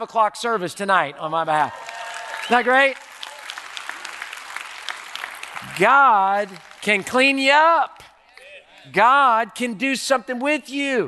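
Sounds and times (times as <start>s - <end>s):
speech: 0.0s - 1.9s, 2.5s - 3.1s, 5.6s - 8.0s, 8.8s - 11.0s
audience applauding: 1.6s - 7.4s.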